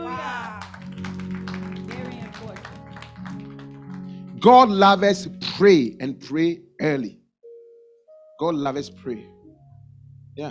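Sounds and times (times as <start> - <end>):
audience clapping: 0.0 - 5.1
speech: 4.4 - 7.2, 8.4 - 9.4.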